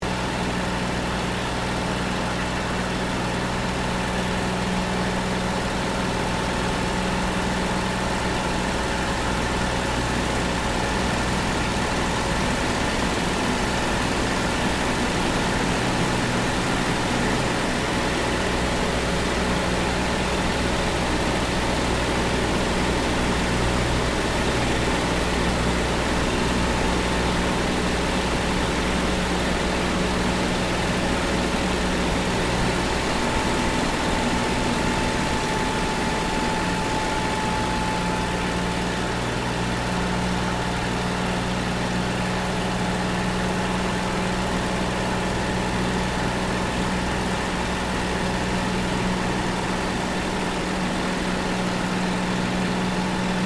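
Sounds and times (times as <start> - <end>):
P-40 Kittyhawk aircraft flying, heard from inside canopy: 0.0 - 53.4.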